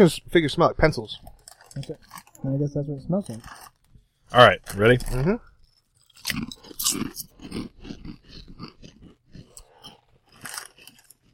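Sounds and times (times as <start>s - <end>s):
speech: 0.0s - 3.7s, 4.3s - 5.5s, 6.2s - 8.8s
kettle cooked chips crunching: 1.2s - 2.4s, 3.2s - 3.8s, 4.4s - 11.3s.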